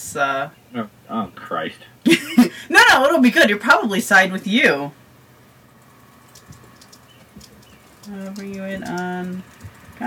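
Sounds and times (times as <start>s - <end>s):
speech: 0.1s - 5.0s, 8.1s - 10.0s
typing on a computer keyboard: 5.8s - 10.0s.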